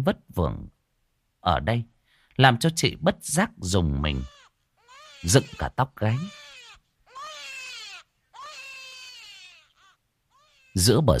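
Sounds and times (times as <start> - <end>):
speech: 0.0 - 0.8, 1.4 - 4.4, 5.2 - 6.5, 10.8 - 11.1
baby crying shrilly: 4.1 - 10.9.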